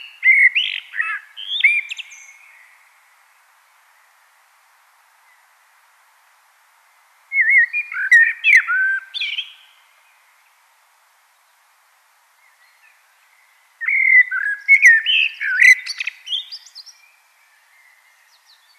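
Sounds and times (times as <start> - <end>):
common blackbird singing: 0.0 - 2.8, 7.3 - 9.8, 12.4 - 18.7.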